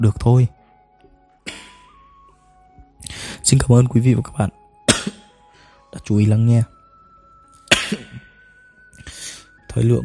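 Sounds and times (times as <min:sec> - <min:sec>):
speech: 0:00.0 - 0:00.6, 0:03.5 - 0:05.2, 0:06.0 - 0:06.8, 0:09.8 - 0:10.0
coughing: 0:01.5 - 0:02.0, 0:04.9 - 0:05.4, 0:07.6 - 0:09.2.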